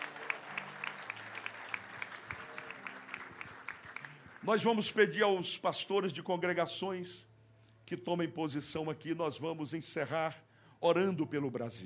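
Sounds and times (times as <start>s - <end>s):
large crowd applause: 0.0s - 4.7s
speech: 4.4s - 7.3s, 7.9s - 11.8s.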